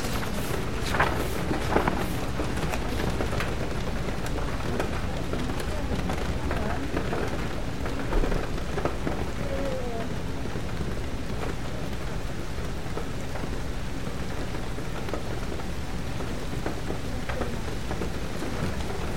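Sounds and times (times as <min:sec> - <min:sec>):
rain pattering on a bookstore window: 0:00.0 - 0:19.1.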